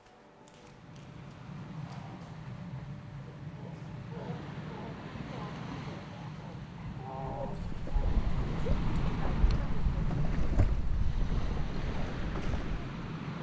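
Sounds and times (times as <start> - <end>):
wind buffeting on the microphone: 1.4 - 13.4
boat engine rumbling on open water: 3.1 - 13.4.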